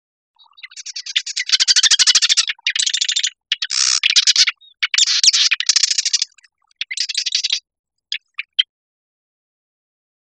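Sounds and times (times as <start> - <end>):
marsh wren giving harsh stuttering rattles: 0.5 - 8.6.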